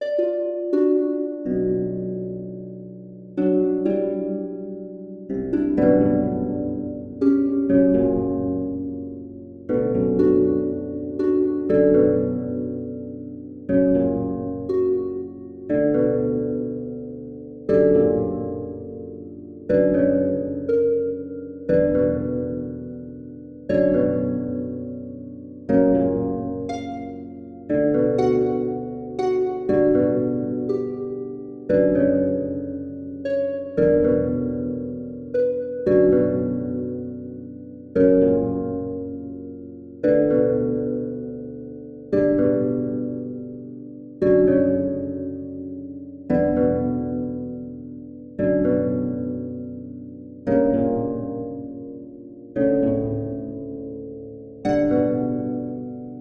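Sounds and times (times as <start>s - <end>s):
harp: 0.0s - 56.2s.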